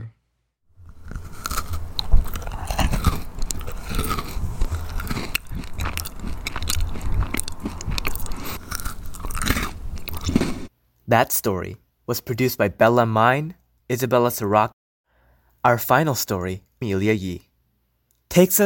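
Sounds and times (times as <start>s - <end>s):
person chomping and crunching food: 0.8s - 10.7s
speech: 11.1s - 14.7s, 15.6s - 17.5s, 18.3s - 18.6s.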